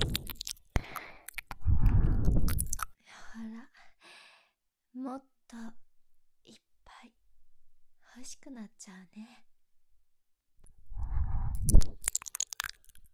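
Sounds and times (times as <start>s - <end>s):
ear licking: 0.0s - 2.9s, 11.5s - 13.0s.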